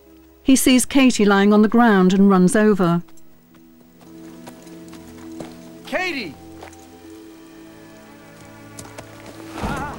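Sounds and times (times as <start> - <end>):
low tonal hum: 0.0 - 9.9
speech: 0.5 - 3.1
horse hooves clip-clopping along a creek bed: 2.9 - 9.9.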